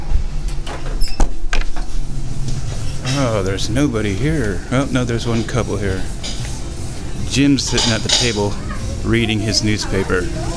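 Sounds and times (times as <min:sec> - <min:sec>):
door opening: 0:00.0 - 0:03.9
speech: 0:03.2 - 0:06.3, 0:07.4 - 0:10.5.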